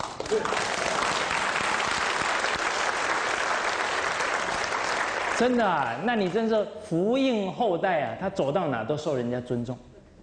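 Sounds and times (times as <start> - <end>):
warm audience applause: 0.0 - 5.9
speech: 0.3 - 0.8, 5.4 - 9.9.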